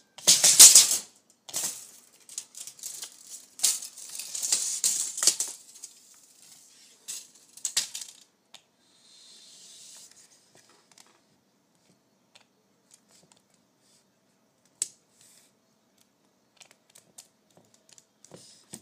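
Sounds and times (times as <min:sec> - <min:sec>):
soft hiss: 0:00.1 - 0:17.3
tape measure being pulled and handled: 0:00.2 - 0:08.3.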